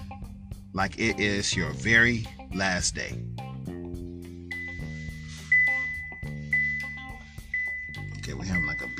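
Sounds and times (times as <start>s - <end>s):
speech: 0.7s - 3.4s
alarm chime going off: 4.5s - 8.9s.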